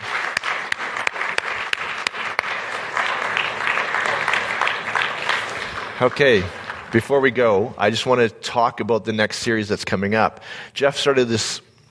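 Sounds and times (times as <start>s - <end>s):
audience applause for the band: 0.0s - 7.7s
speech: 6.0s - 11.7s.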